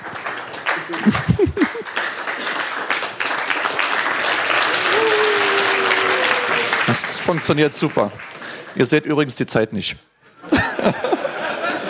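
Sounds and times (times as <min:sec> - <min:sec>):
audience applause: 0:00.0 - 0:08.8
laughter: 0:00.7 - 0:02.0, 0:04.8 - 0:07.1, 0:10.4 - 0:11.8
speech: 0:00.9 - 0:01.7, 0:06.9 - 0:10.1, 0:10.8 - 0:11.1.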